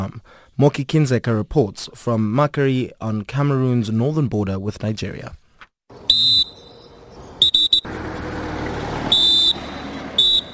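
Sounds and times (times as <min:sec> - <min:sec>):
speech: 0:00.0 - 0:05.4
Cameroon troops blowing whistles: 0:06.0 - 0:07.9, 0:09.1 - 0:10.5.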